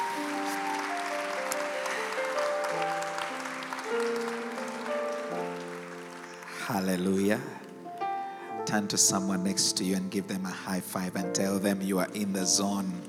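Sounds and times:
audience hand clapping in praise: 0:00.0 - 0:07.9
speech: 0:06.7 - 0:07.6, 0:08.7 - 0:13.0.

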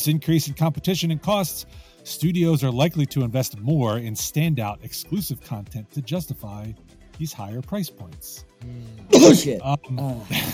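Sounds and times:
speech: 0:00.0 - 0:10.5
loud sharp sneeze: 0:09.1 - 0:09.6.

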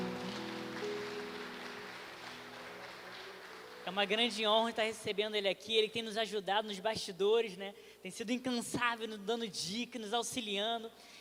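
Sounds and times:
round of applause: 0:00.0 - 0:05.0
speech: 0:03.9 - 0:11.1.

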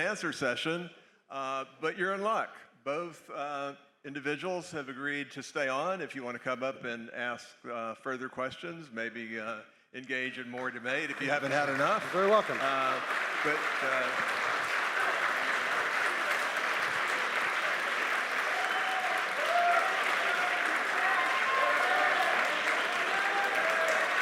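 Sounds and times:
speech: 0:00.0 - 0:14.4
audience cheering: 0:11.3 - 0:24.1.

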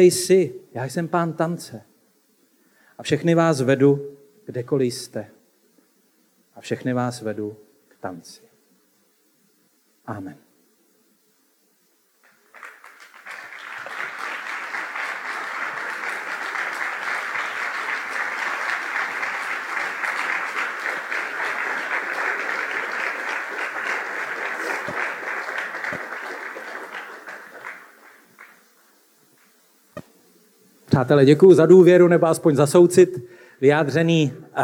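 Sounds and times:
speech: 0:00.0 - 0:01.9, 0:03.0 - 0:05.4, 0:06.6 - 0:08.5, 0:10.1 - 0:10.4, 0:31.0 - 0:34.6
audience applause: 0:12.2 - 0:28.7.

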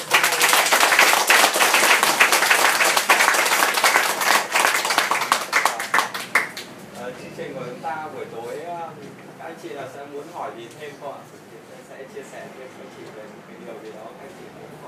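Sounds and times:
audience applause: 0:00.0 - 0:06.7.

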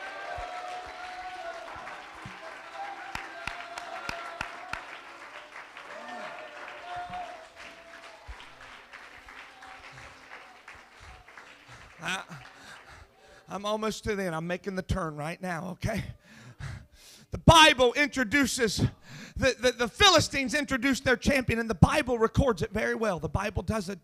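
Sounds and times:
audience clapping: 0:00.0 - 0:13.5
speech: 0:13.6 - 0:16.2, 0:17.6 - 0:24.0.

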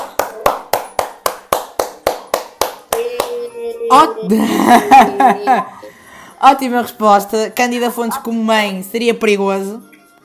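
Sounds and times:
clapping: 0:00.0 - 0:03.4
speech: 0:03.9 - 0:05.8, 0:06.4 - 0:10.2
laughter: 0:04.2 - 0:05.9.

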